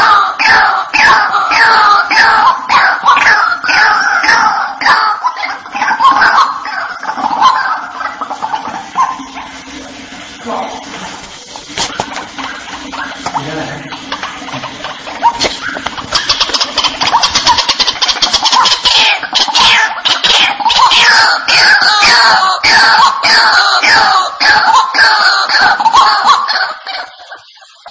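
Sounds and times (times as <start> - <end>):
White-breasted waterhen calling: 0.0 - 9.4, 15.2 - 27.9.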